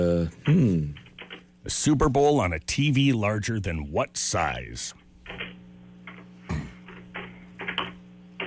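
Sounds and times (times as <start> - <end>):
steady low electrical hum: 0.0 - 8.4
speech: 0.2 - 0.9, 1.7 - 5.0
heavy keyboard typing: 0.9 - 1.4, 6.8 - 8.4.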